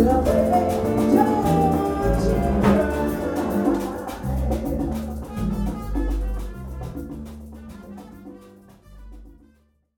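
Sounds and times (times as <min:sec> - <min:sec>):
vocals: 0:00.0 - 0:06.6.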